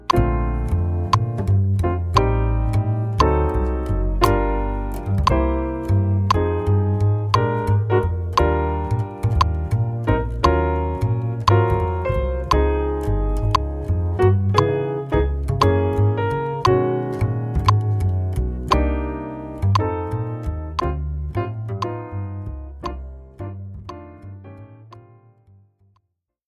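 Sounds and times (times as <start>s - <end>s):
groove click: 0.0s - 25.1s.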